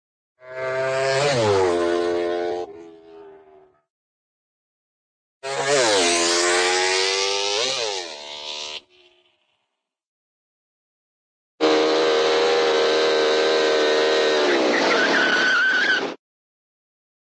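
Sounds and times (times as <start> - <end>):
motorcycle: 0.4 - 3.9, 5.4 - 10.0, 11.6 - 16.2.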